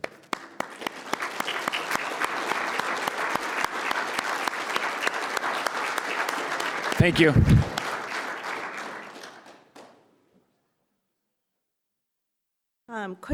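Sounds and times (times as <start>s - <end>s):
audience round of applause: 0.0s - 10.1s
speech: 7.0s - 7.7s, 13.2s - 13.3s.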